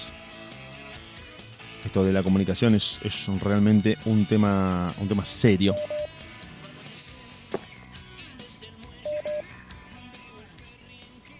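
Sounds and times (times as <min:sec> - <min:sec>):
speech: 0:01.9 - 0:06.1
beep on a telephone line: 0:05.7 - 0:06.1, 0:09.1 - 0:09.5.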